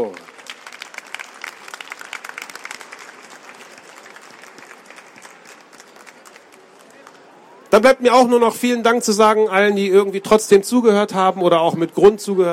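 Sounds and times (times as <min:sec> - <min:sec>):
speech: 0:00.0 - 0:00.3, 0:07.8 - 0:12.5
audience applause: 0:00.0 - 0:07.4.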